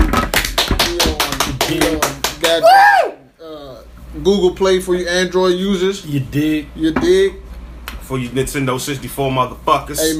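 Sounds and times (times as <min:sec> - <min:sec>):
hosts clapping: 0:00.0 - 0:02.8
speech: 0:02.6 - 0:03.0, 0:04.2 - 0:07.4, 0:08.1 - 0:10.1.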